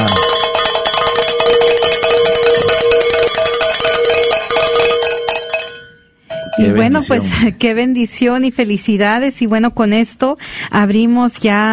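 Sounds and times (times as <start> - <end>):
ringing bells: 0.0 - 7.4
speech: 7.0 - 11.7.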